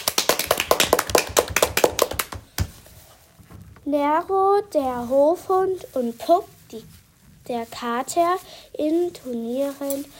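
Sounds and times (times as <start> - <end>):
crowd applause: 0.0 - 2.4
speech: 3.9 - 10.1.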